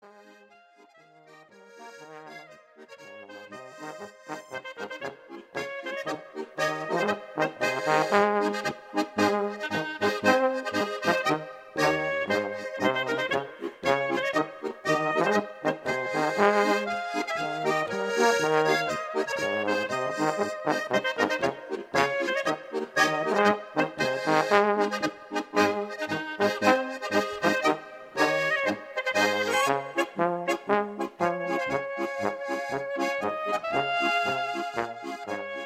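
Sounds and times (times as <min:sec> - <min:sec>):
march music: 0:01.9 - 0:35.6.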